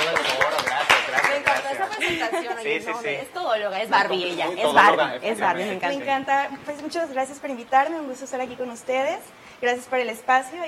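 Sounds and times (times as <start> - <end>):
applause: 0.0 - 2.3
speech: 1.9 - 10.6.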